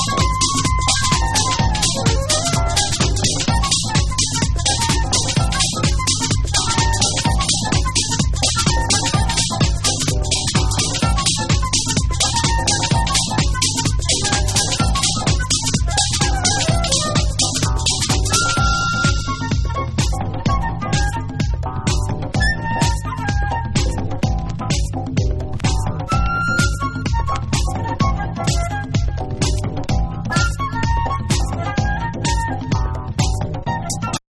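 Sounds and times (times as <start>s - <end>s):
ambient music: 0.0s - 34.2s.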